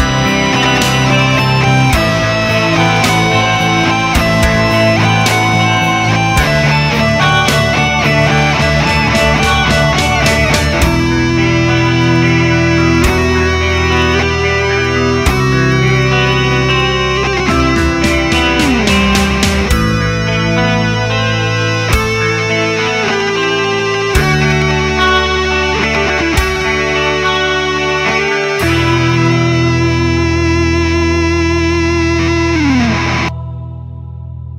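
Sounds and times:
guitar: 0:00.0 - 0:34.5.

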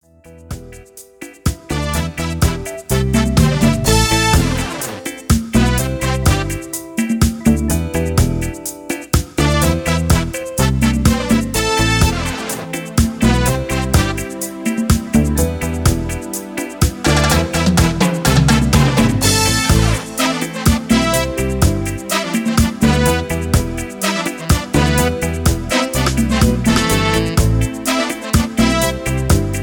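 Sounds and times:
reggae music: 0:00.0 - 0:29.6.

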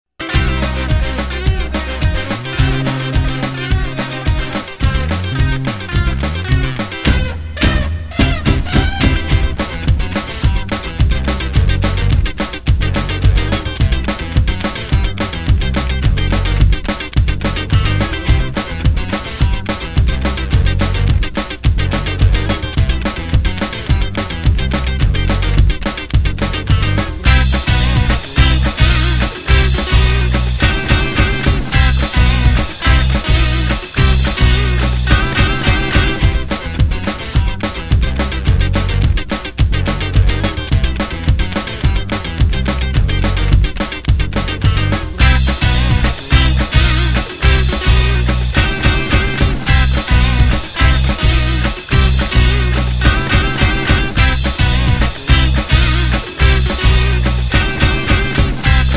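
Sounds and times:
instrumental music: 0:00.2 - 0:58.9.

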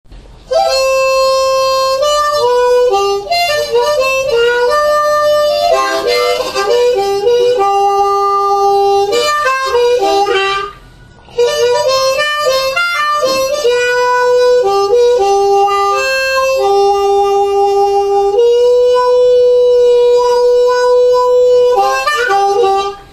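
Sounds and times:
blues music: 0:00.4 - 0:23.1.

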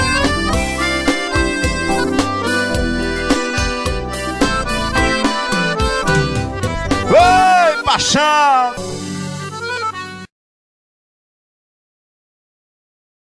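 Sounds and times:
vaquejada potpourri music: 0:00.0 - 0:10.3.

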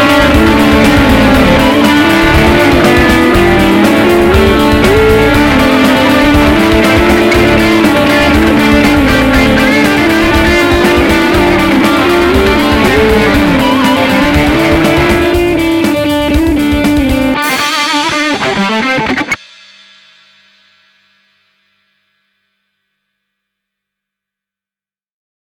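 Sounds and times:
instrumental riff: 0:00.0 - 0:20.2.

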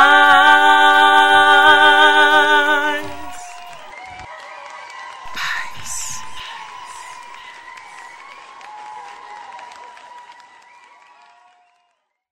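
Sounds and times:
a cappella singing: 0:00.0 - 0:04.0, 0:05.3 - 0:08.2.

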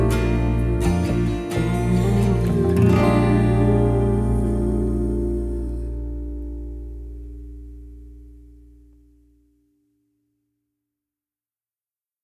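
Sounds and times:
acoustic music: 0:00.0 - 0:09.6.

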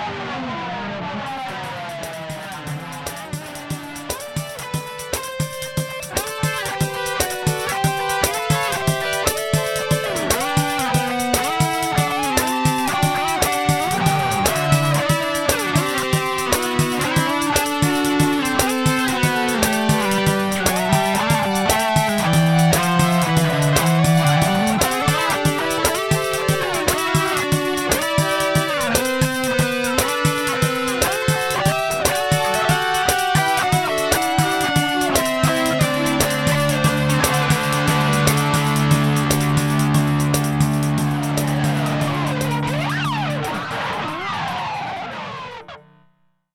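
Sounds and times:
guitar playing: 0:00.2 - 0:46.2.

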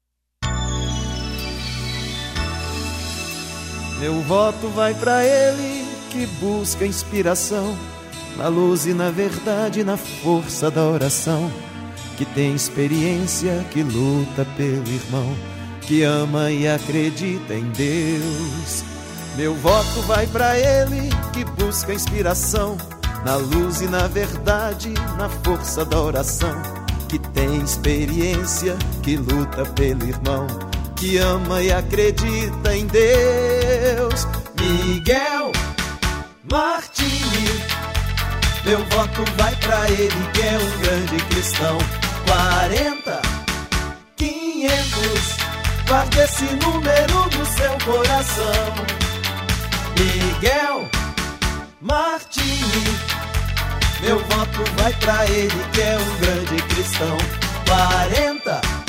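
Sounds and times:
gospel-style jingle: 0:00.4 - 0:58.8.

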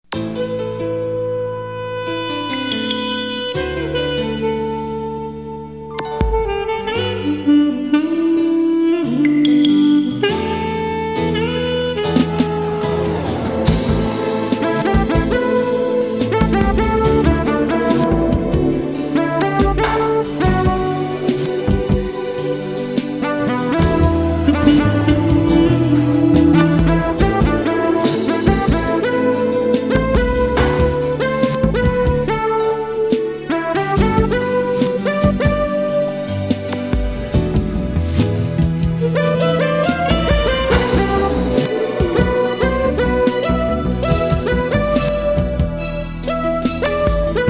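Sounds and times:
ufo instrumental music: 0:00.0 - 0:47.4.

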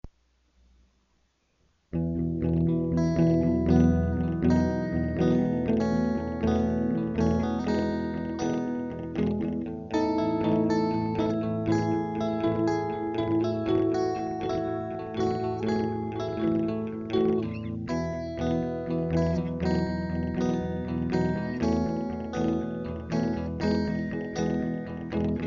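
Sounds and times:
instrumental music: 0:01.9 - 0:25.4.

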